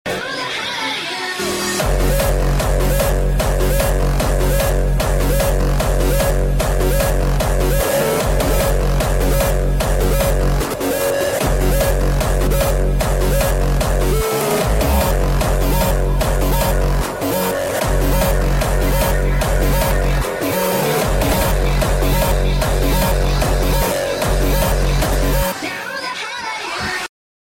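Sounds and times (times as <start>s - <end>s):
hardstyle music: 0.1s - 27.1s.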